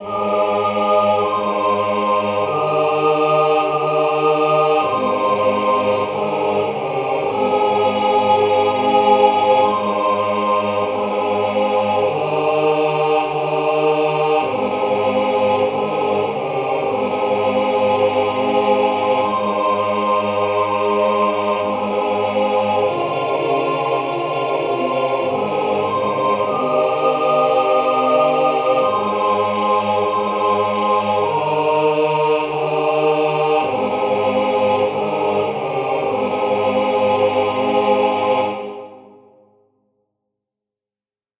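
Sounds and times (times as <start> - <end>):
hymn rhythm outline: 0.0 - 39.1.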